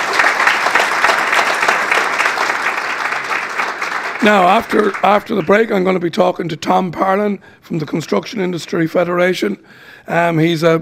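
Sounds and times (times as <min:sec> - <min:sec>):
audience applause: 0:00.0 - 0:05.6
speech: 0:04.2 - 0:10.8.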